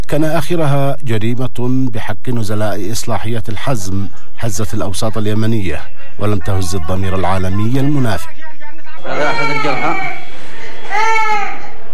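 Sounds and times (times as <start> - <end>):
speech: 0.1 - 8.4, 9.0 - 10.1
child screaming and crying in pain after an attack on the Al-Hazm reformatory in Yemen: 9.1 - 10.2, 10.8 - 11.8.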